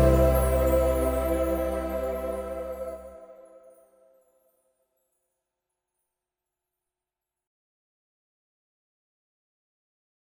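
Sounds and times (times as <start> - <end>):
festive waltz: 0.0 - 3.6.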